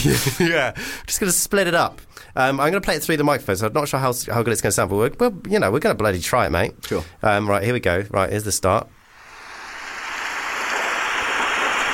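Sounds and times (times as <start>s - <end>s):
speech: 0.0s - 9.0s
rain sound effect: 9.0s - 11.9s.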